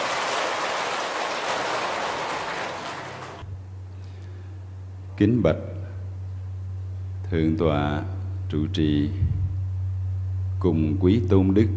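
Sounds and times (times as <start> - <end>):
audience applause: 0.0 - 3.5
speech: 5.2 - 5.8, 7.3 - 9.4, 10.6 - 11.7.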